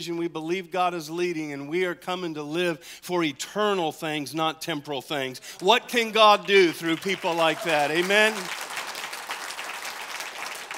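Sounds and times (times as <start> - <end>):
speech: 0.0 - 8.6
audience clapping: 5.6 - 10.7.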